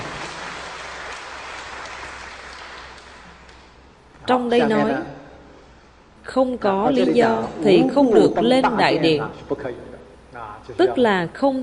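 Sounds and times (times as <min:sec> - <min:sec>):
audience applauding at a talk: 0:00.0 - 0:03.9
speech: 0:04.3 - 0:05.1, 0:06.3 - 0:11.6.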